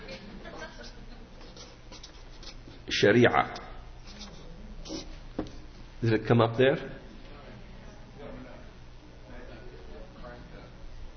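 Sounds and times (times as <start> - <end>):
laughter: 0.0 - 1.4
pen writing on an overhead projector: 0.8 - 2.8, 4.0 - 5.2
speech: 3.0 - 3.6, 6.0 - 7.0.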